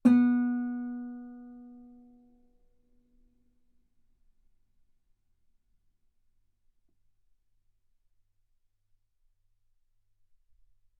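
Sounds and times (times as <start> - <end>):
guitar note B3: 0.1 - 1.9.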